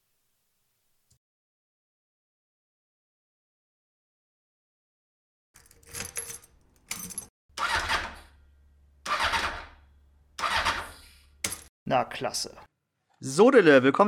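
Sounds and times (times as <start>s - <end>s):
keys jangling in a show jingle: 5.6s - 7.3s
engine cranking, idling and revving in a show jingle: 7.6s - 8.4s, 9.0s - 11.3s
speech: 11.9s - 14.0s.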